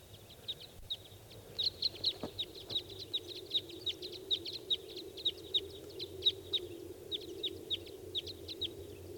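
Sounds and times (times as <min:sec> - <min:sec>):
wild bird calls: 0:00.1 - 0:09.1.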